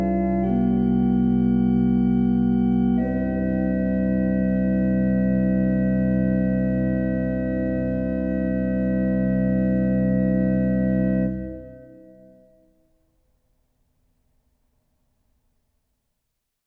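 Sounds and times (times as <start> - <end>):
organ invention in C major: 0.0 - 12.1.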